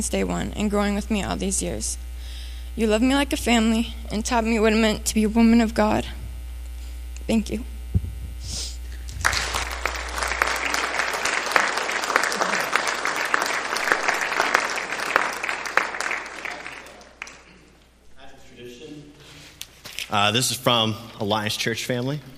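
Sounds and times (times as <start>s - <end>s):
speech: 0.0s - 2.1s, 2.8s - 6.2s, 7.3s - 7.7s, 20.1s - 22.3s
audience applause: 9.0s - 17.5s.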